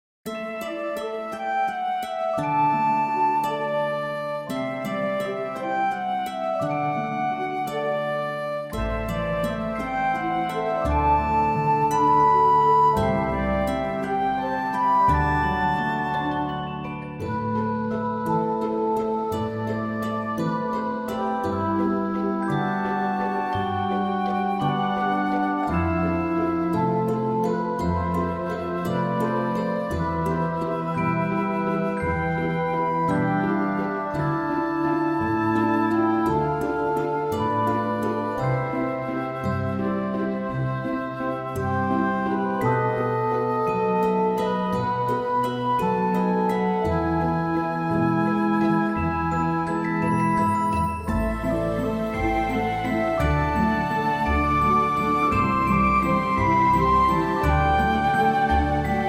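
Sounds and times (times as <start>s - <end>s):
waltz music: 0.3s - 59.0s.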